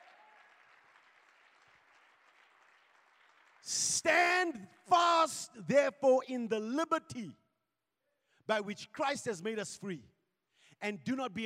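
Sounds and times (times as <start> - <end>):
audience clapping hands: 0.0 - 4.9
speech: 3.6 - 7.4, 8.5 - 11.4.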